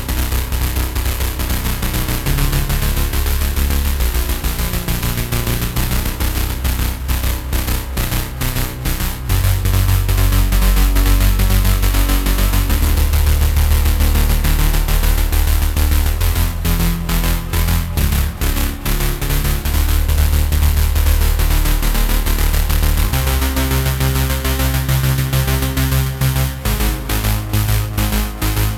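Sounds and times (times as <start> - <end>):
noise bass sequence: 0.0 - 28.7.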